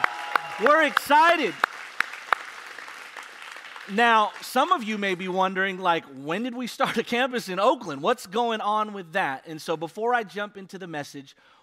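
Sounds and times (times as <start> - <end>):
audience applause: 0.0 - 5.4
speech: 0.6 - 1.7, 3.9 - 11.6.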